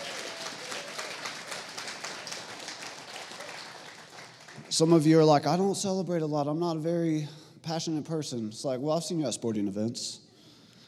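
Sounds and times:
audience cheering: 0.0 - 4.6
audience clapping: 0.0 - 5.2
speech: 4.7 - 10.2.

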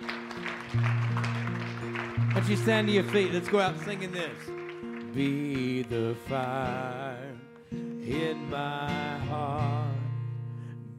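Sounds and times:
round of applause: 0.0 - 6.8
speech: 2.4 - 4.6, 5.2 - 9.8.

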